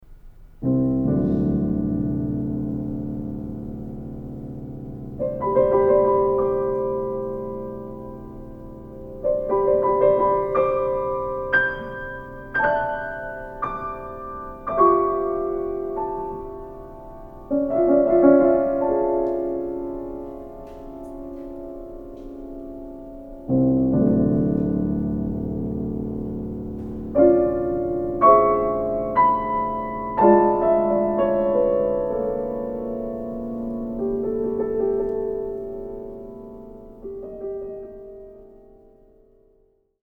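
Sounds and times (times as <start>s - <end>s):
slow piano piece: 0.0s - 40.0s.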